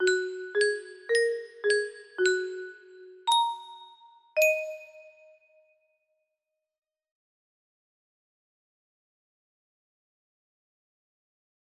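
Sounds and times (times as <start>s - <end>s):
music box melody: 0.0s - 5.4s.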